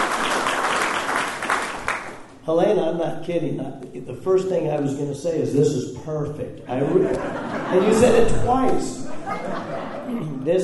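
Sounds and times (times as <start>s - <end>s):
audience applause at a public event: 0.0s - 2.3s
speech: 2.4s - 10.6s
laughter: 6.7s - 10.6s.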